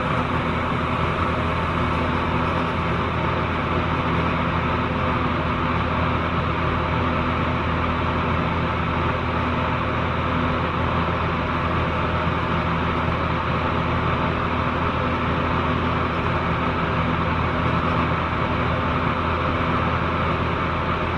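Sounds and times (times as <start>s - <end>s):
ventilation fan: 0.0s - 21.1s.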